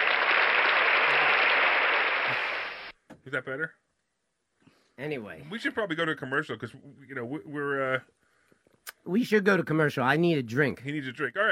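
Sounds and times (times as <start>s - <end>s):
audience applause sound effect: 0.0s - 2.9s
speech: 3.3s - 3.8s, 5.0s - 8.2s, 9.0s - 11.5s.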